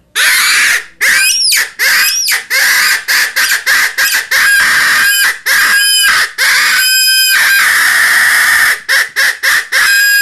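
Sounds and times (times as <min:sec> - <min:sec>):
rabbit distress call for coyote hunting: 0:00.2 - 0:10.2.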